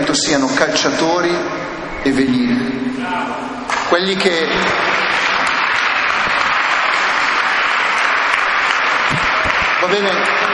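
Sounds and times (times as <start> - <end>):
speech: 0.2 - 5.1, 9.8 - 10.5
audience applause: 3.8 - 10.5.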